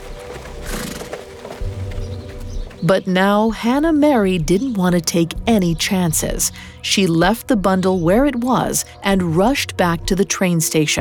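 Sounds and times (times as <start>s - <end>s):
horse-drawn buggy wheels rattling and creaking: 0.0s - 3.1s
horse hooves clip-clopping: 0.0s - 9.1s
speech: 2.8s - 10.9s.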